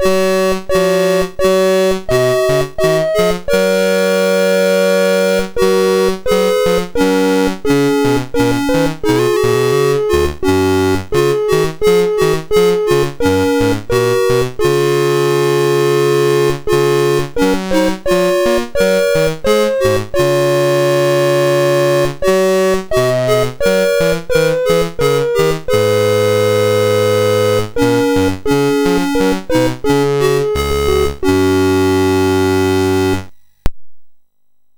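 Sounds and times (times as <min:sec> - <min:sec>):
MOS6581R2 synthesizer chip sound: 0:00.0 - 0:33.3.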